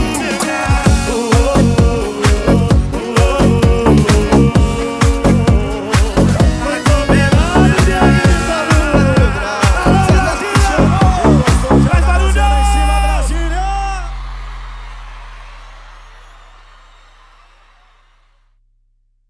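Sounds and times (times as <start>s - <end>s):
sertanejo music: 0.0s - 13.9s.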